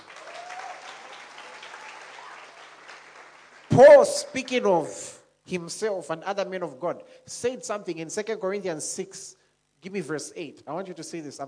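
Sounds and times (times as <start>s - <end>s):
audience clapping: 0.0s - 4.4s
speech: 3.8s - 11.4s.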